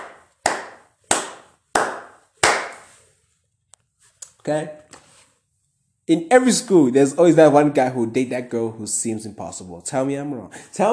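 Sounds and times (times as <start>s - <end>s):
hand claps: 0.0s - 3.0s
speech: 4.4s - 4.8s, 6.1s - 10.9s.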